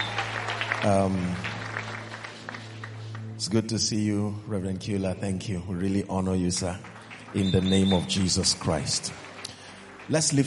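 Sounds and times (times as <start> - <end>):
audience clapping: 0.0 - 3.6, 5.8 - 10.4
speech: 0.8 - 1.6, 3.4 - 9.3, 10.1 - 10.4.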